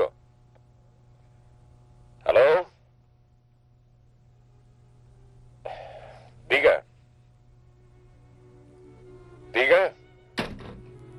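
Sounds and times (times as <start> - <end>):
low steady hum: 0.0 - 11.1
telephone receiver being hung up: 10.4 - 10.9.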